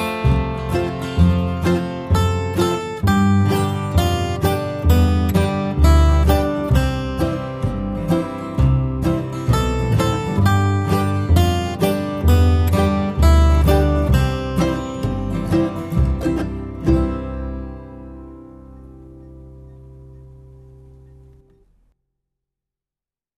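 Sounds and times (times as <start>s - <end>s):
guitar playing: 0.0s - 22.0s.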